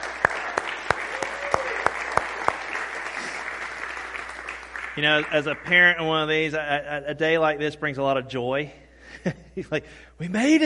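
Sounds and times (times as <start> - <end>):
audience applause: 0.0 - 5.9
speech: 5.0 - 10.6.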